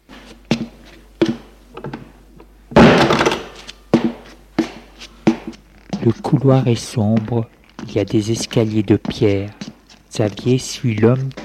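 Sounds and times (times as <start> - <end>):
door being closed: 2.8 - 3.6
speech: 6.0 - 9.6, 10.2 - 11.4.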